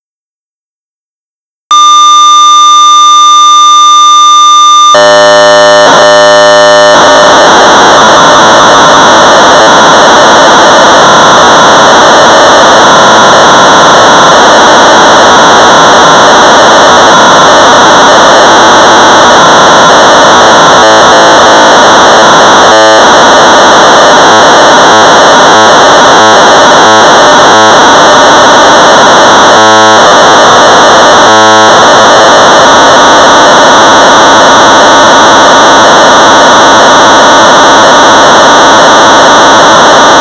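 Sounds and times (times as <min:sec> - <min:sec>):
1200 baud modem data tones: 0:01.7 - 0:40.2.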